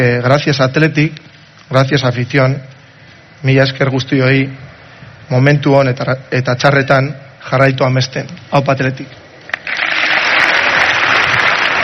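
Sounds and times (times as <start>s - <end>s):
speech: 0.0s - 2.7s, 3.4s - 4.6s, 5.3s - 9.9s
audience applause honoring the Athletic Club captain: 9.6s - 11.8s.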